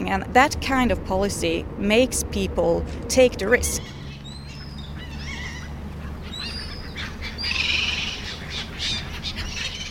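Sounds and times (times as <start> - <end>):
steady low rumble: 0.0 - 9.9
speech: 0.1 - 4.0
seagulls squawking by a lake: 3.6 - 9.9.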